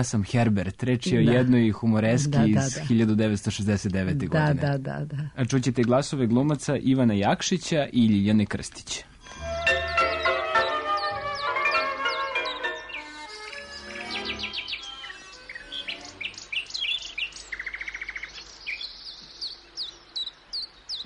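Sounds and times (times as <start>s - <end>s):
speech: 0.0s - 9.1s
Baltimore oriole singing: 9.3s - 16.5s
sparrow calls: 9.6s - 21.0s.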